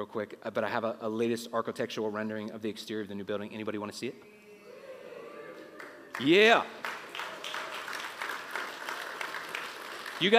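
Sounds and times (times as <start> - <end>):
speech: 0.0 - 4.4, 6.2 - 6.9, 10.2 - 10.3
polite golf clapping from an audience: 5.8 - 10.3.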